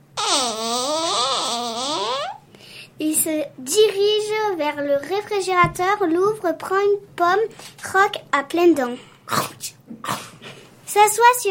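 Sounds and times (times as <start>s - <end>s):
creaking door swinging open: 0.2s - 2.4s
speech: 3.2s - 10.2s, 10.9s - 11.4s.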